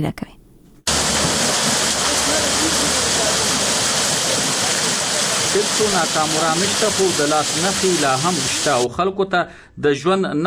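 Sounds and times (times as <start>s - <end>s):
speech: 0.0s - 0.4s, 5.5s - 10.4s
water lifted from a canal by an araht water wheel in Kandy village, Nurgal district: 0.9s - 8.9s.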